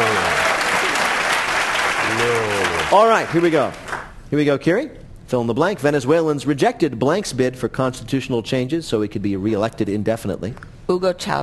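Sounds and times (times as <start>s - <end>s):
quiz show studio audience applause for a contestant: 0.0s - 4.2s
speech: 2.9s - 11.4s.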